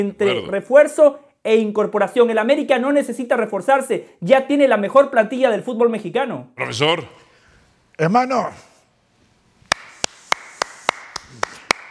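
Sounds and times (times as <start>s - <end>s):
speech: 0.0s - 7.2s, 8.0s - 8.7s
clapping: 9.7s - 11.8s.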